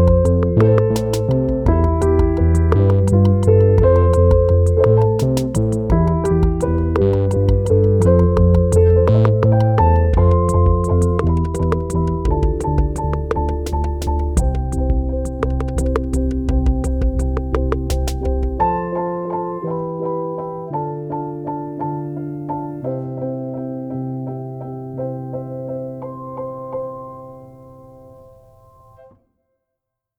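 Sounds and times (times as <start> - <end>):
buzzy minuet: 0.0 - 22.9.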